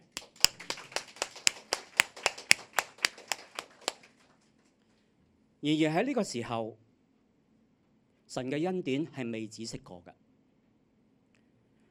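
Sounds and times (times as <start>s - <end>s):
clapping: 0.0s - 4.7s
speech: 5.6s - 6.9s, 8.4s - 10.2s.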